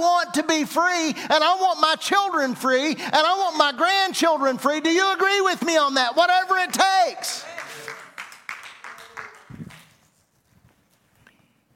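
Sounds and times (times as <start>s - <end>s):
speech: 0.0s - 7.4s
sparse audience clapping: 6.4s - 10.2s.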